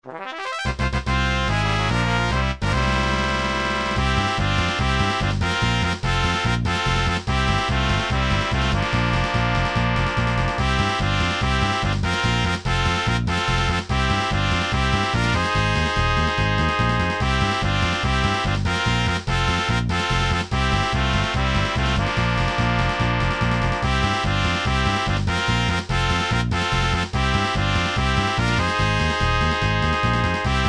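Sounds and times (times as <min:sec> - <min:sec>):
fanfare: 0:00.0 - 0:30.6.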